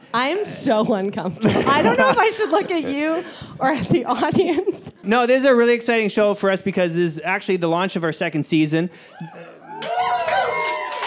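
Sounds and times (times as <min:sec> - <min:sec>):
speech: 0:00.2 - 0:09.9
laughter: 0:00.4 - 0:04.8
live audience cheering: 0:09.2 - 0:11.0.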